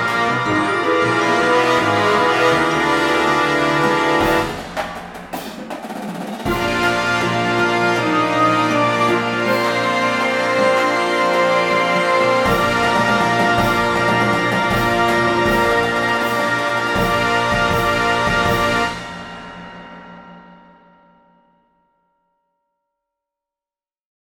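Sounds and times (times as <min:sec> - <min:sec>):
classical suite: 0:00.0 - 0:04.8, 0:06.4 - 0:19.6.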